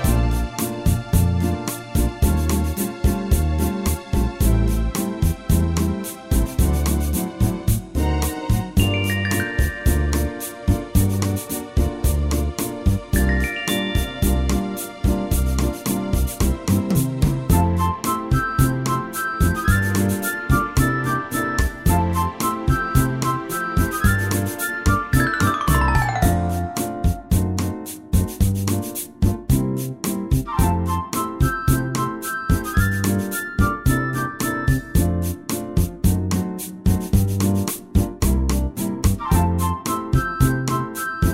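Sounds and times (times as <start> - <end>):
jogging bossa nova on keyboard: 0.0 - 41.3.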